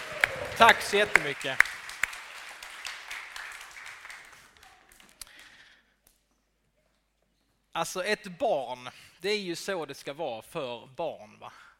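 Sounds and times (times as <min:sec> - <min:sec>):
audience applause: 0:00.0 - 0:05.6
speech: 0:00.6 - 0:01.7, 0:07.8 - 0:11.7.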